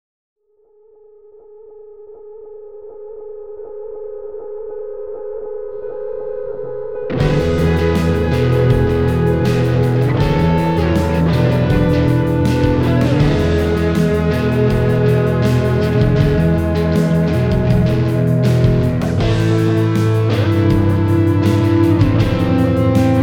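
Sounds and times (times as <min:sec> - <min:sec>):
tiny major metal music: 0:07.2 - 0:23.2.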